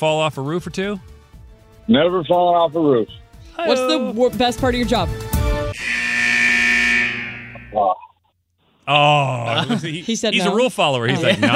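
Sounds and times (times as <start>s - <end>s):
speech: 0.0s - 1.2s, 1.9s - 5.3s, 7.7s - 8.0s, 8.8s - 11.5s
game buzzer: 5.7s - 7.8s
laughter: 8.9s - 11.5s.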